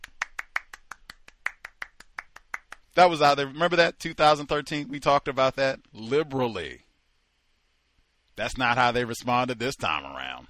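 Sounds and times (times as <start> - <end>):
hand clapping: 0.0 - 3.0
speech: 3.0 - 6.8, 8.4 - 10.4.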